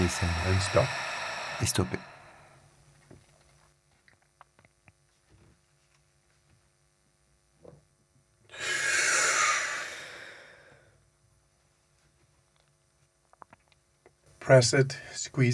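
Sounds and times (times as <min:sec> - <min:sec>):
long exhalation during a breathing exercise: 0:00.0 - 0:02.6, 0:08.5 - 0:11.0
speech: 0:00.1 - 0:02.1, 0:14.5 - 0:15.5.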